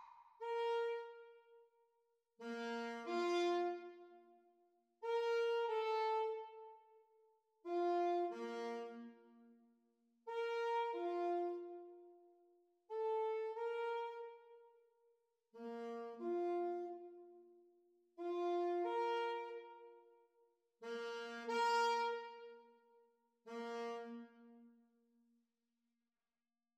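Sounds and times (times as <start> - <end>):
saxophone duet playalong: 0.4 - 1.6, 2.4 - 4.2, 5.0 - 6.9, 7.7 - 9.3, 10.3 - 12.1, 12.9 - 14.6, 15.6 - 17.4, 18.2 - 20.1, 20.8 - 22.9, 23.4 - 24.7.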